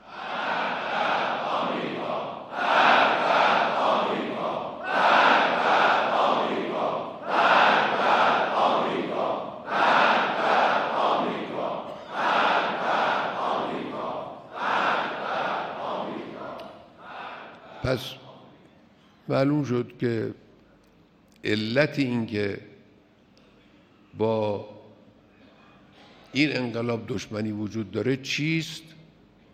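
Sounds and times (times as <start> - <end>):
crowd shouting slogans against America: 0.0 - 18.4
speech: 17.9 - 18.2, 19.3 - 20.4, 21.4 - 22.7, 24.2 - 24.7, 26.3 - 28.9.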